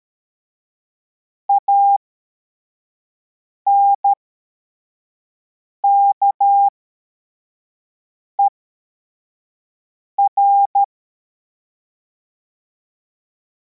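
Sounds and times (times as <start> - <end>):
CW morse code beeps: 1.5 - 2.0, 3.7 - 4.2, 5.8 - 6.7, 10.2 - 10.9.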